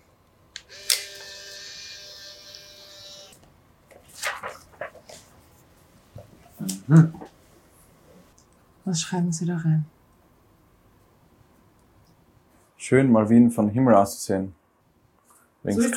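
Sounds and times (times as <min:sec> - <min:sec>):
camera shutter click: 0:00.6 - 0:03.2
speech: 0:06.6 - 0:07.2, 0:08.9 - 0:10.0, 0:12.9 - 0:14.6, 0:15.6 - 0:15.9.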